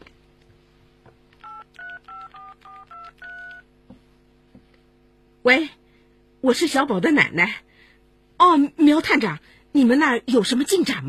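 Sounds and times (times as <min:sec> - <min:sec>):
low hum: 0:00.0 - 0:11.0
mobile phone number being dialed: 0:01.4 - 0:03.6
speech: 0:05.4 - 0:05.8, 0:06.4 - 0:07.7, 0:08.4 - 0:11.0.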